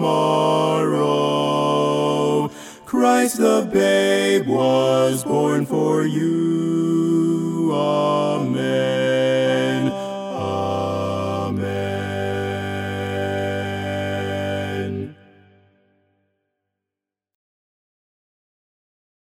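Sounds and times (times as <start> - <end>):
bass voice singing a carol: 0.0 - 15.2.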